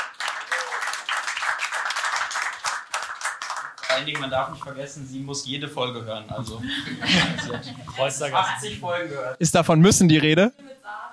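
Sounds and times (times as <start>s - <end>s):
short round of applause from a small group: 0.0s - 4.4s
speech: 3.9s - 10.6s
laughter: 6.4s - 8.9s.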